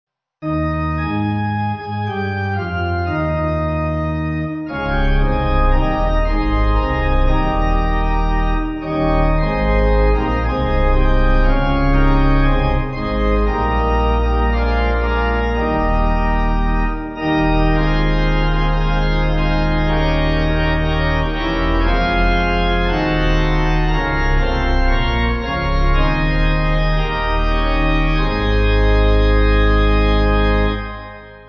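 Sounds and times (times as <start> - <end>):
pipe organ: 0.4 - 31.4.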